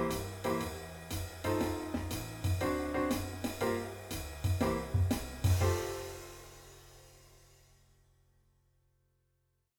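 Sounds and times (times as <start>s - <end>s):
blues bass accompaniment: 0.0s - 6.5s.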